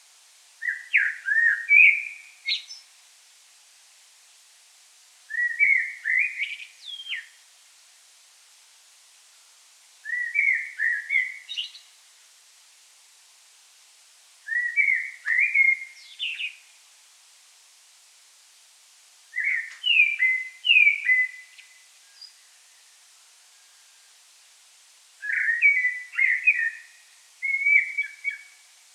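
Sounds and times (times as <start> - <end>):
common blackbird song: 0.6 - 2.9, 5.3 - 7.4, 10.0 - 12.0, 14.5 - 16.7, 19.3 - 24.2, 25.2 - 28.8.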